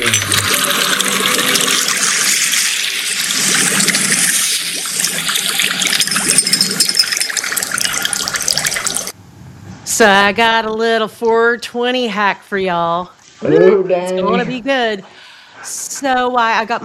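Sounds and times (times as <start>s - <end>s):
cauldron bubbling sound effect: 0.0s - 9.2s
water churning and gurgling: 0.0s - 9.2s
speech: 10.0s - 16.8s.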